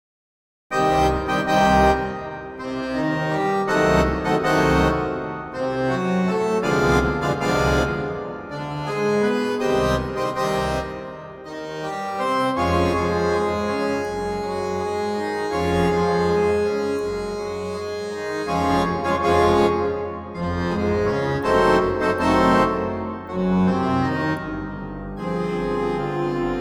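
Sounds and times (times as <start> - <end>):
harmoniums playing: 0.7 - 26.5.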